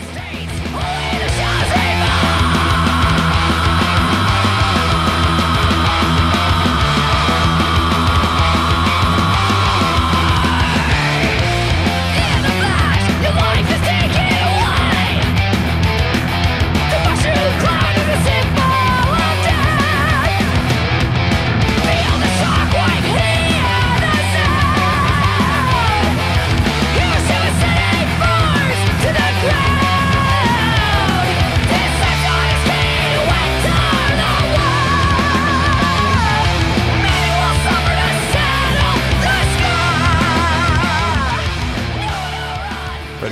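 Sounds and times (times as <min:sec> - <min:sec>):
heavy metal song: 0:00.0 - 0:43.3
metal vocal scream: 0:00.2 - 0:43.2.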